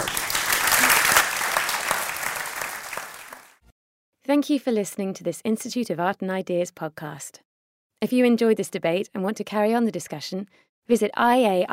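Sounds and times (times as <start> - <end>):
laughter: 0.0 - 2.4
audience applause: 0.0 - 3.6
speech: 4.3 - 11.7.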